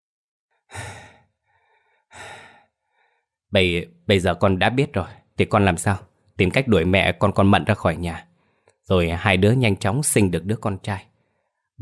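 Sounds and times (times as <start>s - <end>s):
labored, tired breathing: 0.6s - 3.4s
speech: 3.5s - 8.3s, 8.9s - 11.1s.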